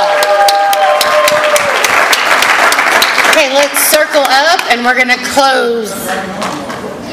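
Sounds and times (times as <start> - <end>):
audience applause: 0.0 - 4.0
speech: 3.6 - 6.6.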